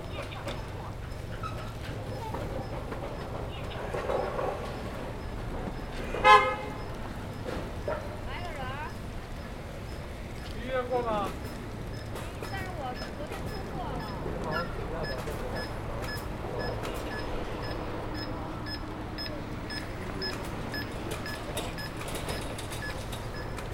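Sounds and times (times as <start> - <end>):
city traffic hum by Peking University south gate: 0.0 - 23.7
voices of passersby: 0.0 - 23.7.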